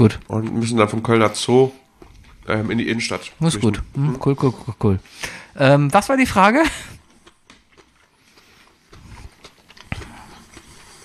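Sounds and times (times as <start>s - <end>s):
speech: 0.0s - 1.8s, 2.4s - 7.0s
person biting and chewing a spring roll: 0.0s - 4.5s, 6.8s - 11.0s.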